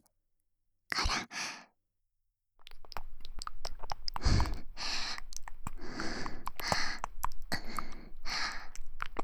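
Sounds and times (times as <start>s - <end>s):
person whispering: 0.9s - 1.3s, 2.6s - 9.2s
ear licking: 2.6s - 9.2s.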